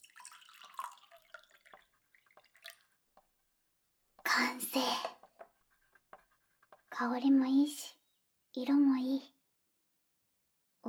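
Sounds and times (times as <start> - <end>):
freshly brewed coffee pouring into a cup: 0.0 - 3.0
speech: 4.4 - 5.2, 7.0 - 8.0, 8.6 - 9.4.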